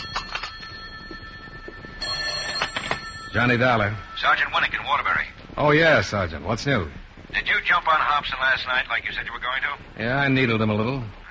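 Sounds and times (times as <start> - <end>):
telephone bell ringing: 0.0 - 5.5
speech: 3.3 - 11.2
steady hiss: 3.4 - 11.3.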